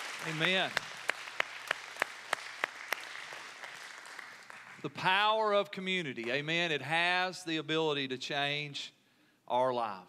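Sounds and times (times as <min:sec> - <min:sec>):
applause: 0:00.0 - 0:05.1
speech: 0:00.2 - 0:00.9, 0:04.8 - 0:10.0.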